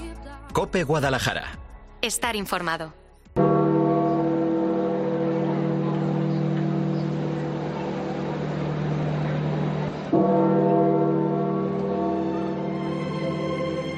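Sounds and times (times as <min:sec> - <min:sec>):
speech: 0:00.6 - 0:03.0
large church bells of St Peter's Basilica tolling: 0:03.4 - 0:13.9.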